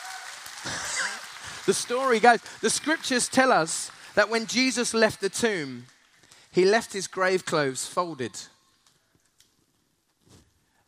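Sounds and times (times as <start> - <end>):
audience applause: 0.0 - 6.8
speech: 1.6 - 5.9, 6.5 - 8.5.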